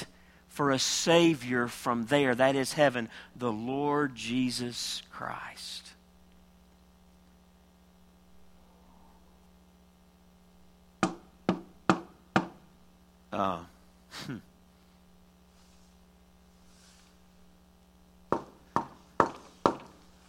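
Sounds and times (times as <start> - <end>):
speech: 0.6 - 6.0, 13.3 - 14.5
knocking: 11.0 - 12.6, 18.3 - 20.0.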